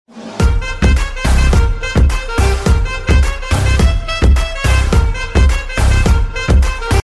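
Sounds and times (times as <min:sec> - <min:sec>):
instrumental music: 0:00.1 - 0:07.0.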